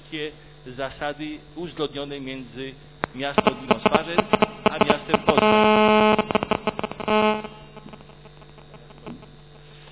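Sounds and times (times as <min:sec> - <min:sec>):
speech: 0:00.1 - 0:05.9
mobile phone buzzing: 0:03.4 - 0:09.4.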